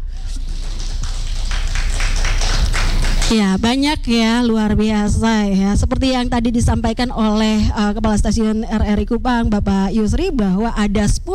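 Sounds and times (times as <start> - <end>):
audience applause: 0.1 - 3.4
speech: 3.3 - 11.3.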